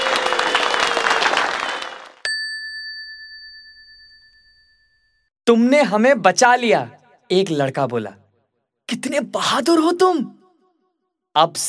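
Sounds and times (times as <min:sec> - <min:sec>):
crowd applause: 0:00.0 - 0:02.2
bright bell chime: 0:02.2 - 0:05.3
speech: 0:05.5 - 0:08.2, 0:08.9 - 0:10.4, 0:11.4 - 0:11.6.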